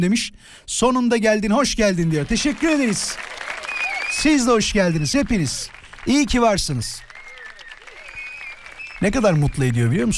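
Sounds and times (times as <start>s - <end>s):
speech: 0.0s - 3.4s, 4.2s - 7.1s, 9.0s - 10.1s
recorded applause played by host: 2.0s - 10.1s.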